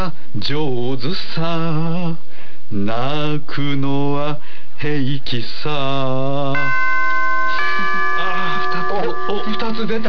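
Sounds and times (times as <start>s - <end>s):
speech: 0.0s - 6.9s, 8.7s - 10.0s
bell struck to score a performance: 6.6s - 10.0s.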